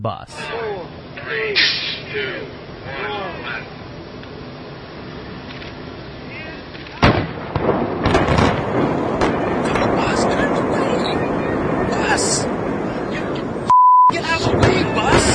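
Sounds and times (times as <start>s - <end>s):
speech: 0.0s - 3.9s, 12.1s - 13.3s
Georgia Dome stadium implosion: 7.0s - 15.3s.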